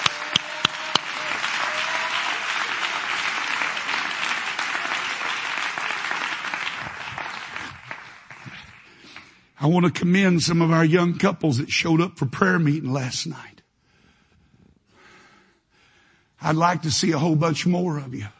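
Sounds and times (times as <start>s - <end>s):
audience clapping hands: 0.0s - 9.6s
speech: 9.6s - 13.5s, 16.5s - 18.3s.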